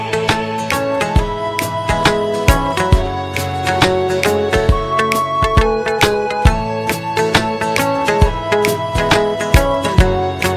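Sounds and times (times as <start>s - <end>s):
flute tone: 0.1s - 10.5s.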